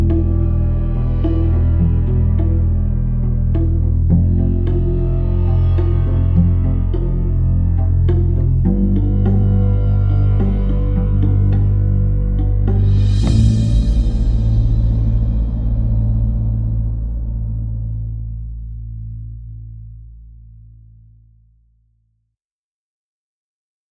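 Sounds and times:
violins: 0:00.0 - 0:17.4
synth pads: 0:00.0 - 0:21.3
bass: 0:00.0 - 0:22.1.

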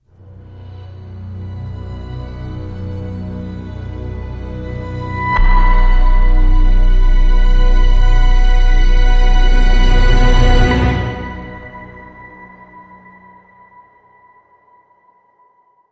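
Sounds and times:
dramatic music sting without percussion: 0:04.0 - 0:12.7.

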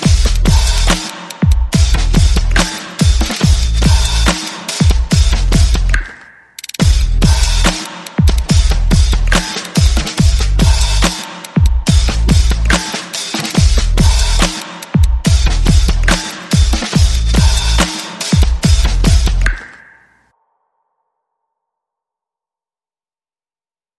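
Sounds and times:
bass: 0:00.0 - 0:01.0, 0:01.8 - 0:02.7, 0:03.4 - 0:06.1, 0:06.8 - 0:07.7, 0:08.3 - 0:09.4, 0:10.0 - 0:11.1, 0:11.8 - 0:12.9, 0:13.5 - 0:14.5, 0:15.3 - 0:16.2, 0:16.9 - 0:19.6
percussion: 0:00.0 - 0:20.2.

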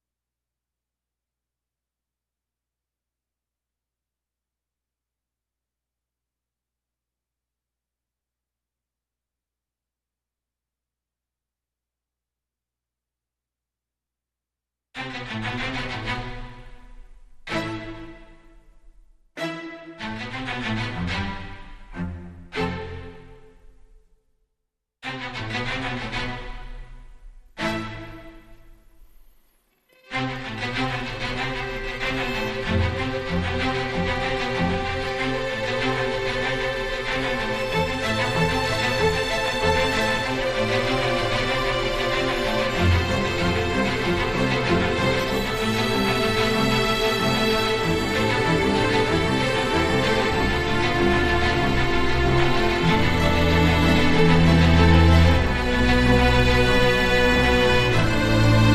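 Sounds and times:
strings: 0:15.0 - 0:18.7, 0:19.4 - 0:23.6, 0:25.0 - 0:29.2, 0:29.9 - 0:58.7.

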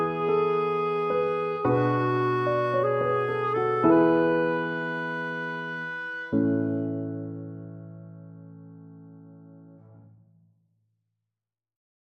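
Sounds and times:
clarinet: 0:00.0 - 0:08.6
piano: 0:00.0 - 0:10.2.

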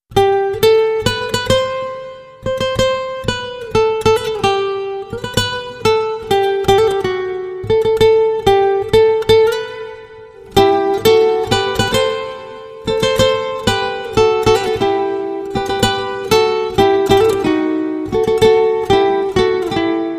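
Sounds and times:
guitar: 0:00.1 - 0:20.1.

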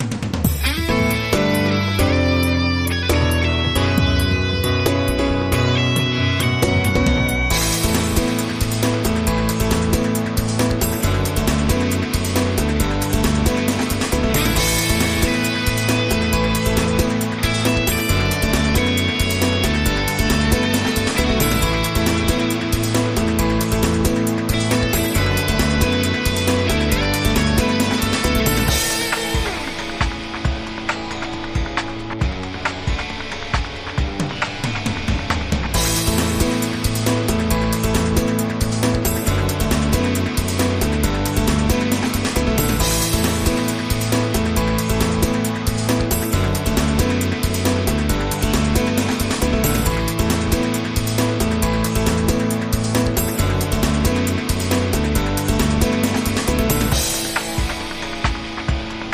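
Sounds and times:
breaking news promo music: 0:00.3 - 0:59.1.

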